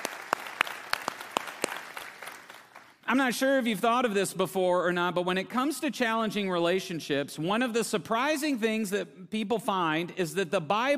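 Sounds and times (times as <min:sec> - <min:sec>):
audience applause: 0:00.0 - 0:02.9
speech: 0:03.1 - 0:10.9.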